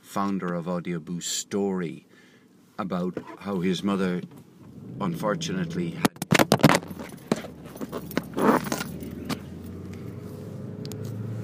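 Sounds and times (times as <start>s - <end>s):
speech: 0.1s - 2.2s, 2.8s - 6.1s
steady low engine hum: 3.7s - 11.4s
phone being dropped: 6.0s - 9.4s.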